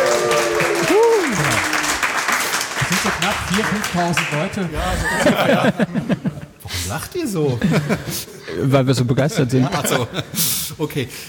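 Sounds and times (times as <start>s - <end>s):
live audience cheering and applauding: 0.0s - 5.6s
laughter: 2.8s - 10.7s
speech: 3.4s - 11.2s.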